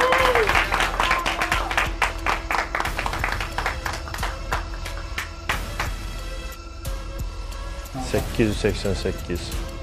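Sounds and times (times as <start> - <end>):
audience applause: 0.0 - 5.9
speech: 8.1 - 9.7.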